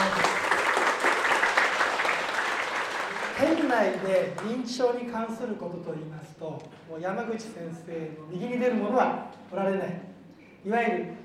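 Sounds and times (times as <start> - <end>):
audience applause for a guest university professor at a talk on dementia: 0.0 - 4.5
speech: 3.4 - 11.2.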